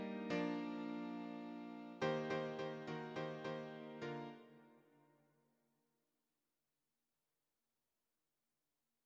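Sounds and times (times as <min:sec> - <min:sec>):
piano: 0:00.0 - 0:04.6.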